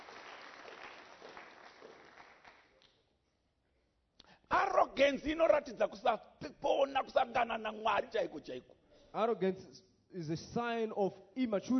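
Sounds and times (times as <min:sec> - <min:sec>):
audience applause: 0:00.0 - 0:02.8
speech: 0:05.0 - 0:11.7.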